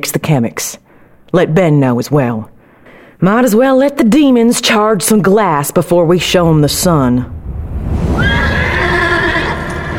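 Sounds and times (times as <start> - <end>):
speech: 0.0 - 2.5, 3.2 - 7.4
steady low rumble: 6.1 - 9.9
horse whinnying: 8.2 - 9.9.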